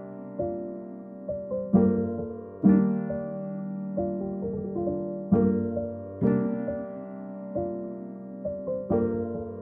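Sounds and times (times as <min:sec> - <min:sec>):
piano keys playing in A minor: 0:00.0 - 0:09.6.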